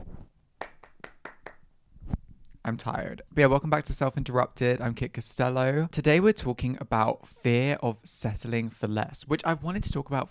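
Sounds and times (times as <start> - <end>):
sharp hand claps: 0.6 - 1.6
speech: 2.7 - 10.2.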